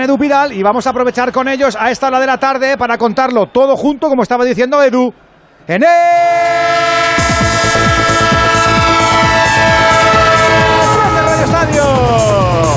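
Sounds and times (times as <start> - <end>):
speech: 0.0 - 6.9
train horn in a sound effect: 6.4 - 12.3.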